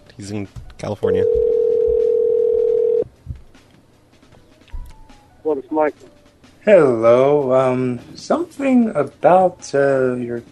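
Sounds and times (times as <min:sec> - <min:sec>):
speech: 0:00.2 - 0:01.4, 0:05.4 - 0:10.4
telephone dial tone: 0:01.3 - 0:03.0.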